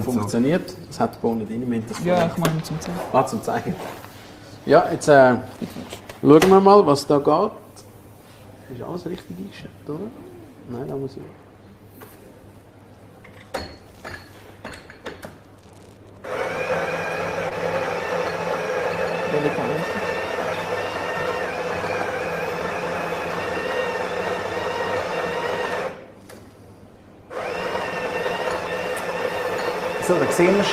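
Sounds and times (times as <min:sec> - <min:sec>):
speech: 0:00.0 - 0:07.6, 0:08.7 - 0:11.4, 0:19.4 - 0:20.0, 0:30.4 - 0:30.7
espresso machine pump humming while brewing coffee: 0:16.2 - 0:26.0, 0:27.3 - 0:30.7.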